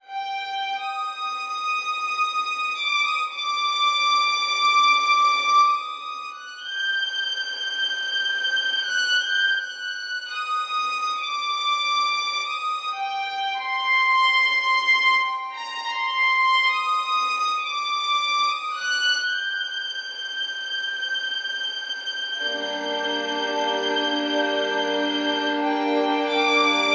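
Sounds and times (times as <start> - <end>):
dreamscape violin music: 0.0 - 26.9.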